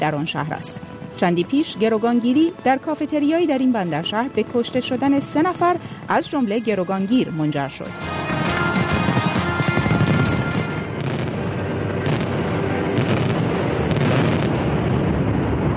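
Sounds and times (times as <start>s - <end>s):
speech: 0.0s - 8.3s
New Year fireworks exploding: 8.1s - 15.7s.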